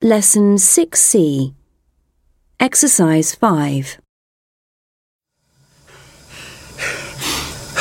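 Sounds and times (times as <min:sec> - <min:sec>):
speech: 0:00.0 - 0:01.6, 0:02.6 - 0:04.0
heavy breathing after hard physical exertion: 0:05.7 - 0:07.7.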